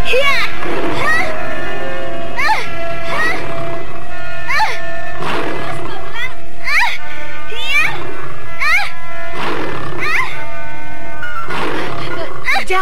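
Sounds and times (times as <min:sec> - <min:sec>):
layered growls: 0:00.1 - 0:01.7, 0:02.3 - 0:06.4, 0:07.8 - 0:10.5, 0:11.5 - 0:12.7
tiger roaring and snarling: 0:00.5 - 0:01.7, 0:02.8 - 0:04.3, 0:05.1 - 0:06.3, 0:09.3 - 0:10.5, 0:11.5 - 0:12.6.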